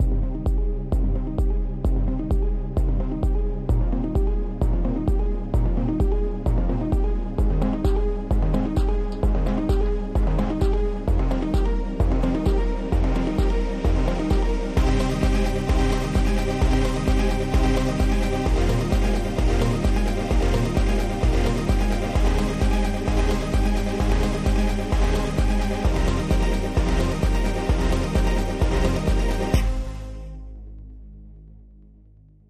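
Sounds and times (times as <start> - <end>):
alternative percussion: 0.0 - 30.0.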